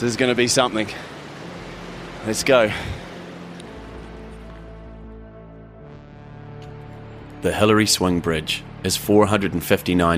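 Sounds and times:
speech: 0:00.0 - 0:01.2, 0:02.2 - 0:03.0, 0:07.4 - 0:10.1
river flowing beneath a suspension bridge: 0:00.0 - 0:05.2.

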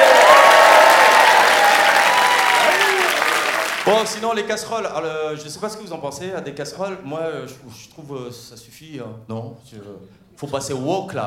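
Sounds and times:
high whistles or calls: 0:00.0 - 0:03.8
cheers and shouts: 0:00.0 - 0:04.0
large crowd clapping: 0:00.0 - 0:04.2
speech: 0:03.9 - 0:11.2.

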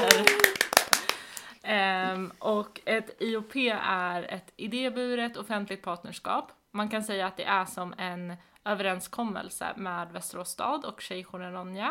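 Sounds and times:
applause: 0:00.0 - 0:01.5
speech: 0:02.6 - 0:11.8.

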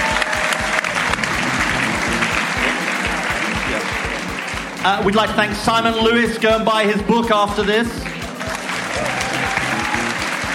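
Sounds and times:
scattered cheers: 0:00.0 - 0:04.4, 0:08.3 - 0:10.5
audience applause: 0:00.0 - 0:05.7, 0:08.0 - 0:10.5
speech: 0:04.8 - 0:08.1.

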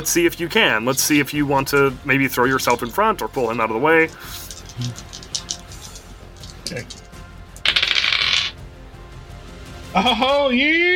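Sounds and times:
speech: 0:00.0 - 0:05.1, 0:06.7 - 0:07.0, 0:10.0 - 0:10.9
dice tumbling across a table in a tabletop game: 0:04.3 - 0:07.0, 0:07.6 - 0:08.6.

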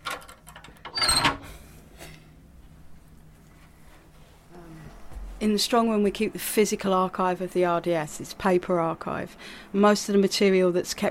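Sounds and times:
archive strong room heavy door opening: 0:00.9 - 0:01.5
speech: 0:05.4 - 0:11.0.

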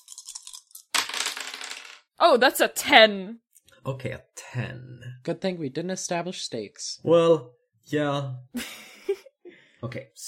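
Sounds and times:
three dice being rolled: 0:00.0 - 0:02.1
speech: 0:02.2 - 0:09.2, 0:09.8 - 0:10.2.

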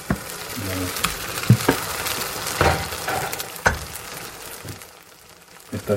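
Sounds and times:
tortilla egg mixture sizzling in hot oil in a frying pan: 0:00.0 - 0:05.9
utensils clinking and tapping against a frying pan: 0:01.0 - 0:04.2.

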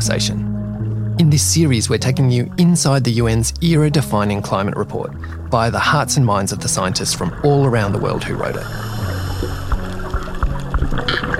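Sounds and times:
speech: 0:00.0 - 0:00.5, 0:01.2 - 0:09.6
steady low hum while scuba diving underwater over coral reef: 0:00.0 - 0:11.3
swishing water from scuba diver swimming over coral reef: 0:00.6 - 0:11.3
short bubbly hiss underwater: 0:05.1 - 0:11.3.

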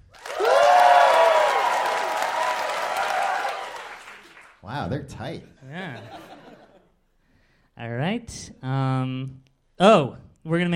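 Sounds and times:
crowd cheering with whoops and shouts: 0:00.0 - 0:04.4
live audience applause: 0:00.0 - 0:04.6
speech: 0:04.9 - 0:06.3, 0:07.8 - 0:10.7
laughter: 0:05.6 - 0:06.9.

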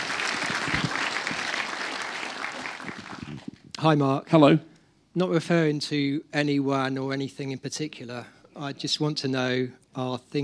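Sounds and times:
audience applause: 0:00.0 - 0:03.5
speech: 0:03.8 - 0:10.4.

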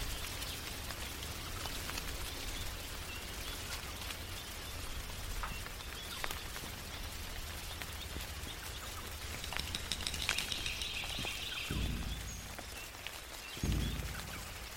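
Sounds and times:
raindrops pattering on a tree: 0:00.0 - 0:14.7
steady low hiss and rumble: 0:00.0 - 0:14.7
heavy low thumps: 0:09.2 - 0:13.0, 0:13.6 - 0:14.7
bright bird-like chirping: 0:09.2 - 0:14.7.

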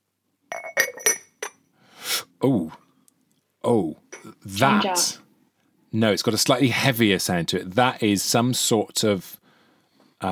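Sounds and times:
pestle and mortar pieces clinking together: 0:00.5 - 0:01.6, 0:04.2 - 0:04.8
speech: 0:02.4 - 0:02.8, 0:03.6 - 0:05.2, 0:05.9 - 0:09.4, 0:10.2 - 0:10.3.

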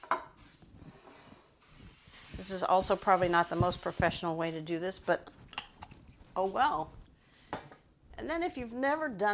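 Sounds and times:
cooking spray coating a baking pan: 0:00.0 - 0:00.8, 0:01.5 - 0:04.4
speech: 0:02.4 - 0:05.4, 0:06.4 - 0:07.0, 0:08.2 - 0:09.3.

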